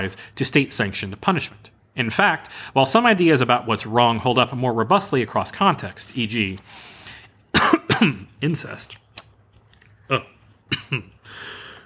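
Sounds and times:
speech: 0.0s - 6.9s, 7.6s - 9.0s, 10.1s - 11.6s
cough: 7.5s - 8.3s, 10.7s - 11.1s.

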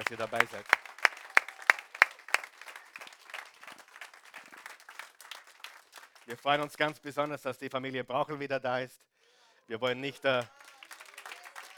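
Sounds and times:
audience applause: 0.0s - 7.0s, 10.0s - 11.7s
speech: 0.1s - 0.9s, 6.3s - 9.1s, 9.7s - 10.6s.

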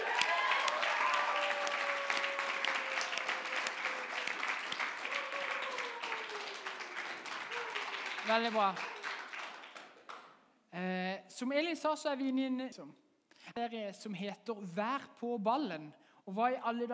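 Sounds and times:
audience applause: 0.0s - 10.2s
speech: 8.3s - 9.0s, 10.8s - 13.0s, 13.6s - 16.9s.

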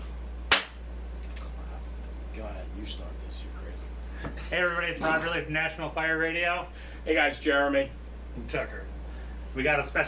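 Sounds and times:
low steady hum: 0.0s - 10.0s
single hand clap: 0.5s - 0.8s
speech: 2.4s - 8.9s, 9.6s - 10.0s.

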